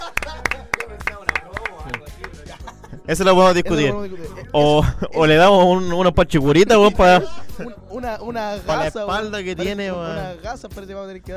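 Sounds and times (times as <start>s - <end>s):
applause: 0.0s - 2.4s
laughter: 0.0s - 5.4s, 6.8s - 7.8s
speech: 3.1s - 11.3s.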